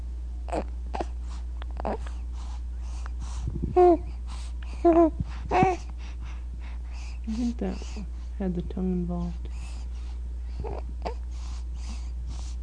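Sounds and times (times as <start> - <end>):
speech: 0.5 - 0.8, 3.8 - 4.1, 8.4 - 9.6
baby guttural sounds: 0.5 - 2.1, 4.8 - 5.8
soft breathing: 1.0 - 8.4, 9.1 - 12.6.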